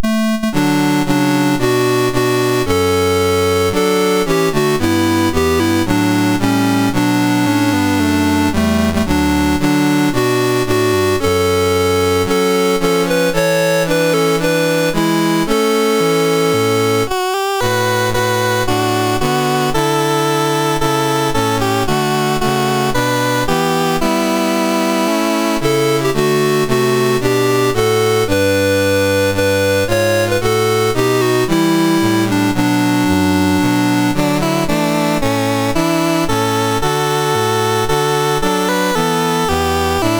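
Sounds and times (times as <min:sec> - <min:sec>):
MOS6581R3 chiptune national anthem music: 0:00.0 - 0:40.1.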